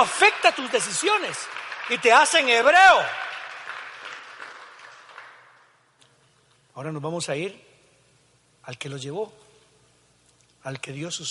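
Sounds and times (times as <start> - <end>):
speech: 0.0 - 3.3, 6.8 - 7.7, 8.7 - 9.4, 10.6 - 11.3
audience applauding: 0.0 - 5.8.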